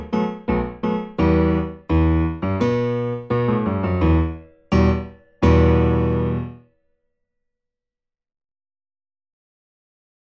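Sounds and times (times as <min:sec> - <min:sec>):
secondo part of four-hand piano practice pieces: 0:00.0 - 0:06.6.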